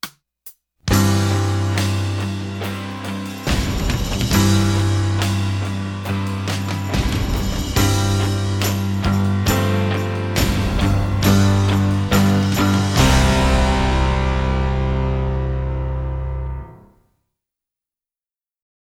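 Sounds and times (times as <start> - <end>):
percussion: 0.0 - 15.2
band playing a fanfare: 0.9 - 16.8.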